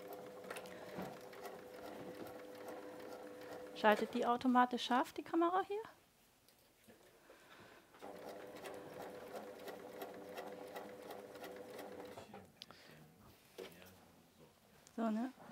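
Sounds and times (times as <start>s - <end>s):
sewing machine stitching: 0.0s - 4.5s, 8.0s - 12.4s
speech: 3.8s - 5.9s.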